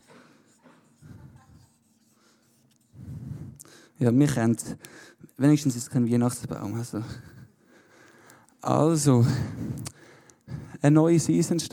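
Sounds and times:
pencil scratching on paper while drawing palm trees: 0:00.0 - 0:03.0
speech: 0:04.0 - 0:07.4, 0:08.7 - 0:10.0, 0:10.8 - 0:11.7.

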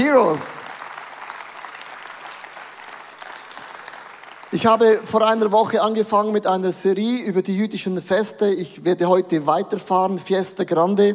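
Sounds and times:
speech: 0:00.0 - 0:00.6, 0:04.5 - 0:11.1
audience applause: 0:00.0 - 0:05.0.

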